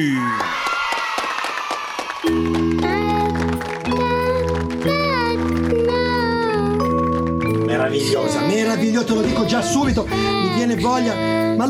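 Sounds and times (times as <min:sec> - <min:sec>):
applause welcoming a performer on a radio show: 0:00.2 - 0:07.6
speech: 0:07.9 - 0:11.6.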